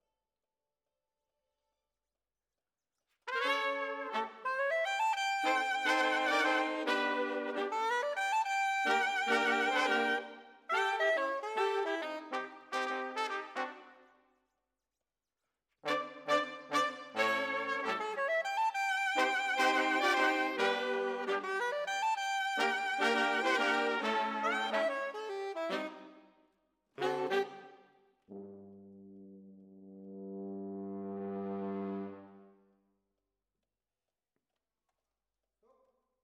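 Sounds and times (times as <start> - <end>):
brass instruments: 3.3 - 14.1, 15.8 - 26.2, 27.0 - 32.6.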